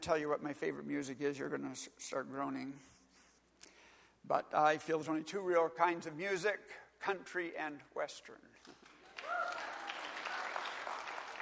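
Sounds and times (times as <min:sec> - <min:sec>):
speech: 0:00.0 - 0:03.0, 0:04.2 - 0:08.9
audience clapping: 0:08.6 - 0:11.3.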